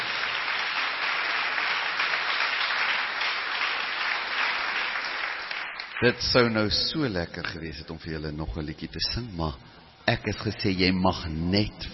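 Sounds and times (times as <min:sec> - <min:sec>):
crowd applause: 0:00.0 - 0:06.2
speech: 0:06.0 - 0:11.9.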